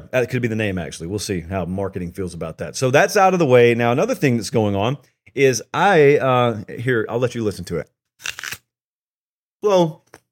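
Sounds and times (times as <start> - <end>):
speech: 0.1 - 8.4, 9.6 - 10.1
crunchy bite into an apple: 8.2 - 8.7.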